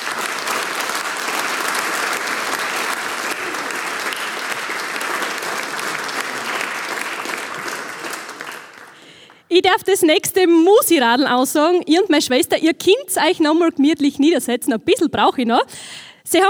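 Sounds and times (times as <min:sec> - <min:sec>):
audience applause: 0:00.0 - 0:09.5
speech: 0:09.6 - 0:16.4.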